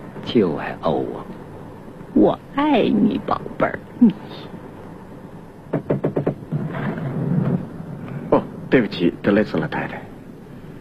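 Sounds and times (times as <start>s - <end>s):
low rumbling noise: 0.0s - 10.7s
speech: 0.3s - 1.3s, 2.2s - 4.6s, 8.7s - 10.0s
knocking on a door: 5.7s - 6.9s.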